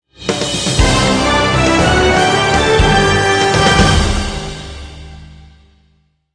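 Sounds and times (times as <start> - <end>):
victory jingle: 0.7 - 5.2.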